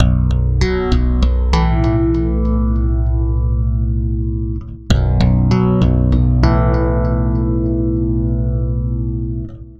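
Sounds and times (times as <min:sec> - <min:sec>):
stick bass loop: 0:00.0 - 0:09.7.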